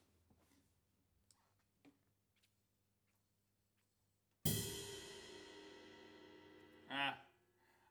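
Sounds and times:
ride cymbal: 4.5 - 7.1.

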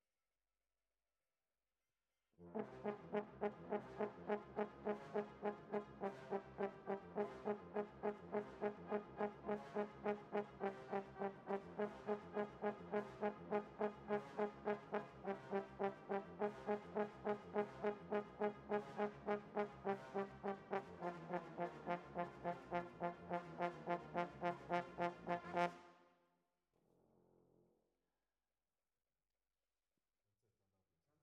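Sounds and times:
horns: 2.6 - 25.9.

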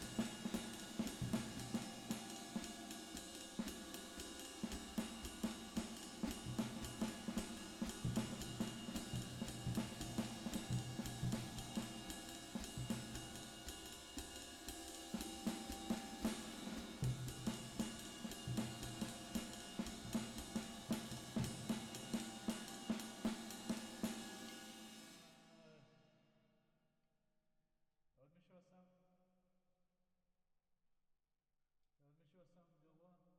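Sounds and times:
drums with reverb: 0.0 - 25.6.

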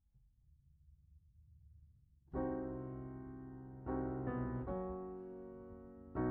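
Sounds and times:
piano: 2.3 - 6.2.

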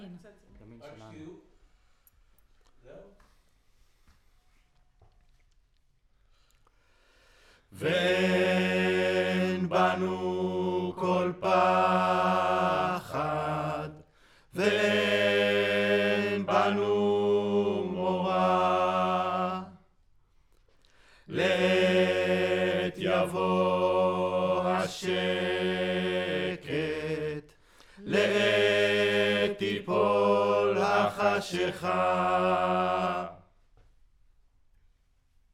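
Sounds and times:
choir singing: 7.7 - 19.9, 21.3 - 33.6.

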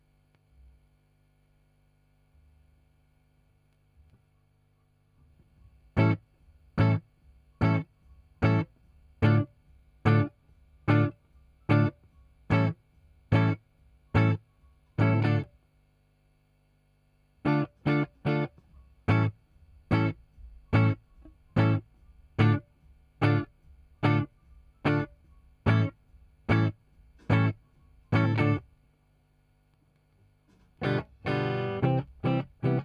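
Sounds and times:
guitar: 5.4 - 15.5, 17.4 - 28.7, 30.5 - 32.8.

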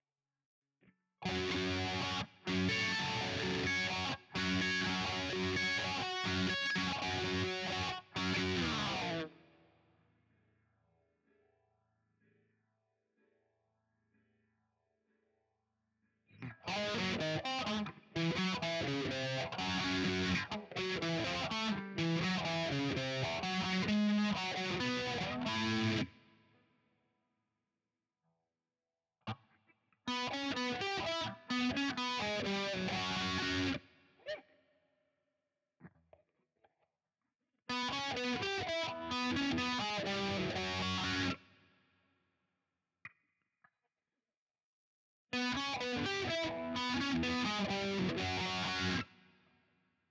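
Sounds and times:
guitar: 1.2 - 10.2, 16.3 - 26.6, 29.2 - 34.6, 37.7 - 41.5, 45.3 - 49.4.

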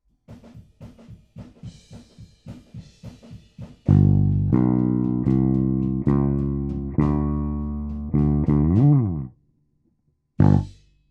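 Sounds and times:
bass: 3.7 - 9.4, 10.4 - 11.0.

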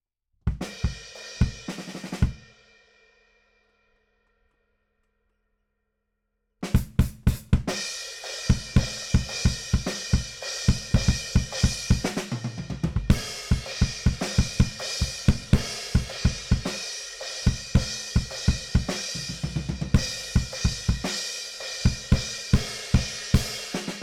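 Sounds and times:
bass drum: 6.8 - 7.8, 8.5 - 16.8, 17.5 - 21.1, 21.9 - 24.0.

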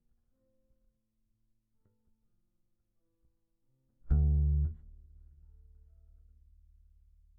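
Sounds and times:
bass guitar recorded by direct input: 4.1 - 7.2.

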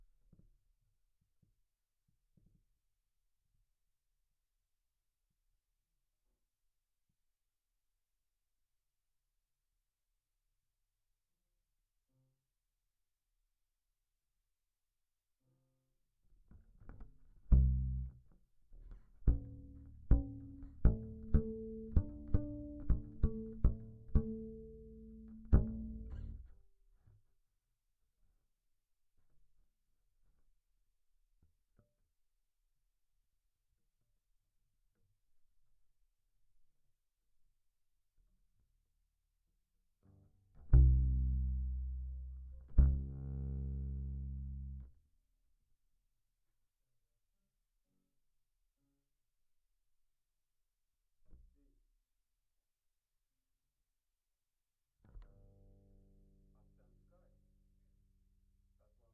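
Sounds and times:
bass guitar recorded by direct input: 17.0 - 18.2, 18.8 - 26.5, 40.1 - 44.9, 55.1 - 57.4.

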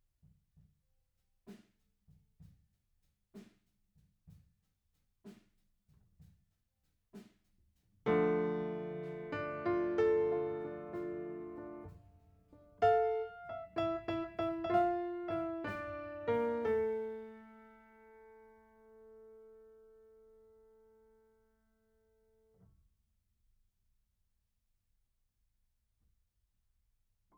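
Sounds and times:
piano note B: 8.1 - 12.0, 12.8 - 18.8.

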